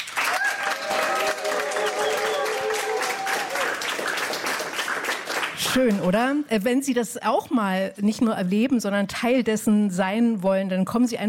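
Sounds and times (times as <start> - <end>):
talk show studio audience clapping: 0.0 - 6.2
speech: 5.7 - 11.2.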